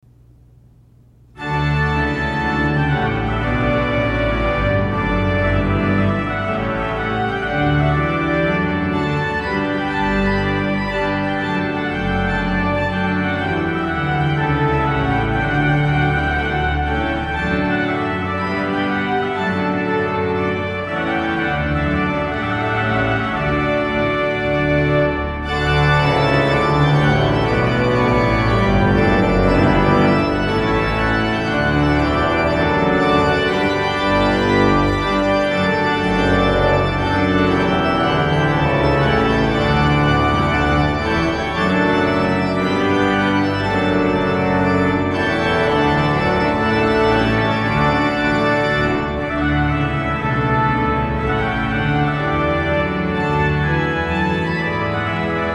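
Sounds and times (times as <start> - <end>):
trumpet piece: 1.4 - 55.5.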